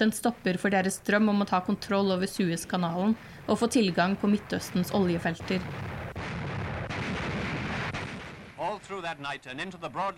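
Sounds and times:
speech: 0.0 - 6.0, 8.8 - 10.1
British artillery guns firing shells: 4.6 - 8.7.

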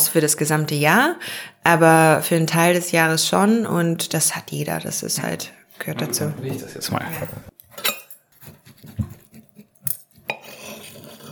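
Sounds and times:
speech: 0.1 - 8.6
knife scraping: 7.1 - 11.2.

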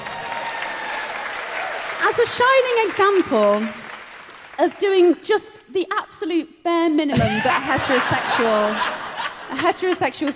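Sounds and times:
audience applause: 0.0 - 4.8
speech: 2.1 - 3.8, 4.6 - 10.3
laughter: 7.2 - 10.1.

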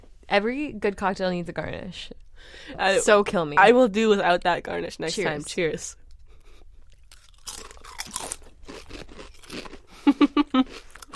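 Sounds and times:
speech: 0.3 - 6.0
chips being chewed: 6.9 - 9.9, 10.6 - 11.1.

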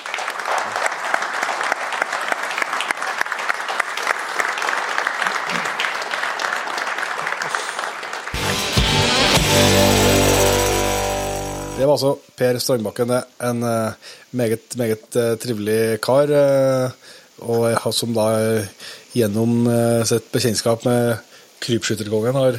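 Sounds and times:
audience clapping: 0.0 - 11.8
loud burst of music: 8.4 - 11.9
speech: 11.8 - 22.5.

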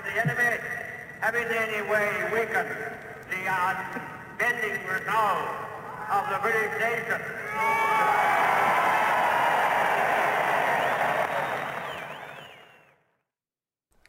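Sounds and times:
speech: 0.2 - 8.5
large crowd cheering at Churchill speech: 7.5 - 13.0
crowd whistles: 10.7 - 13.1.

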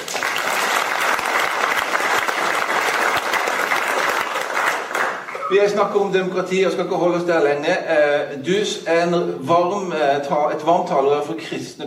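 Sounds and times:
audience applause: 0.0 - 5.6
speech: 5.5 - 11.8.

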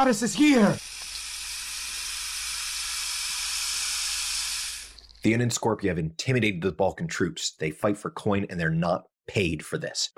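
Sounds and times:
speech: 0.0 - 0.9, 5.2 - 10.1
steam hissing off water: 0.0 - 5.1.

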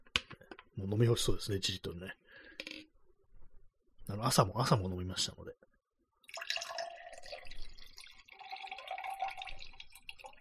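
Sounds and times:
speech: 0.8 - 2.2, 4.1 - 5.7
cold brew coffee being poured into a container: 6.2 - 10.3.

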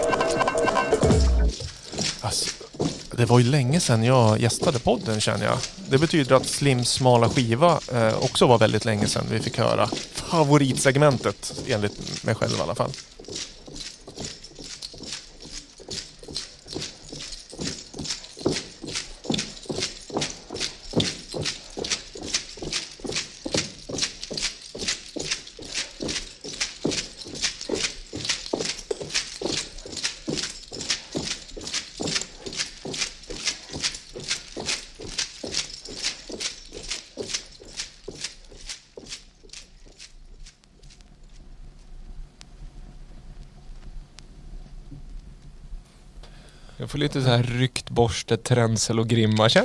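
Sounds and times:
horses moving in a stable: 0.0 - 41.8
speech: 3.2 - 13.2, 47.2 - 49.6.

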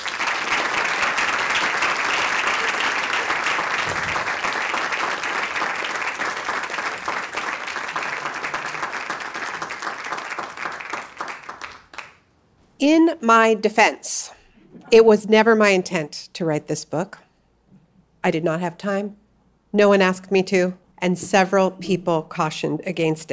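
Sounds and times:
audience applause at a book talk: 0.0 - 12.2
speech: 12.8 - 14.3, 14.9 - 17.2, 18.2 - 23.3.

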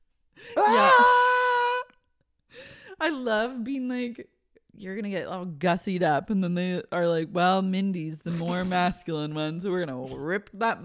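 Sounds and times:
classic movie scream of pain: 0.5 - 1.9
speech: 3.0 - 10.8.

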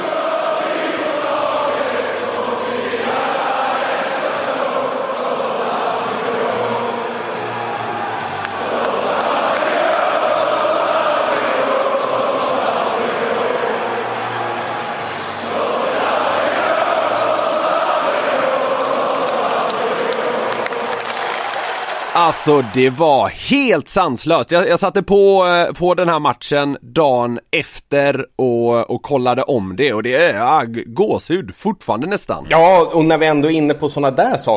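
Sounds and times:
stadium crowd singing anthem before match: 0.0 - 22.2
speech: 22.4 - 34.5.

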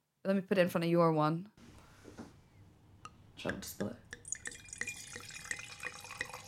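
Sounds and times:
speech: 0.2 - 1.6, 3.4 - 4.1
wine pouring and glugging into a glass: 4.1 - 6.4.

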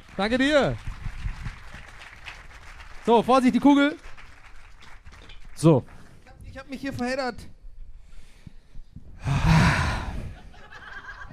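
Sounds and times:
small round of applause: 0.0 - 6.2
speech: 0.2 - 0.9, 3.1 - 4.1, 5.6 - 6.0, 6.6 - 7.5
laughter: 9.3 - 11.3.

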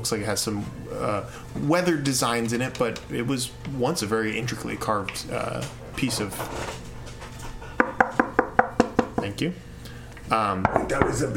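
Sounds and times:
speech: 0.0 - 6.9, 9.3 - 9.7, 10.3 - 11.3
knocking on wood: 7.8 - 9.3.

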